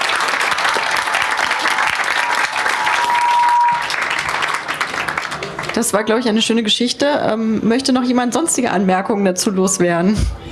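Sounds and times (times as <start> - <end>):
audience applause: 0.0 - 6.6
speech: 5.8 - 10.4.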